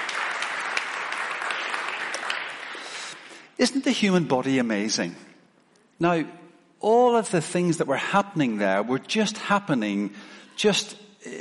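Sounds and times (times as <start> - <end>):
audience applause: 0.0 - 3.3
speech: 3.6 - 5.3, 6.0 - 11.4.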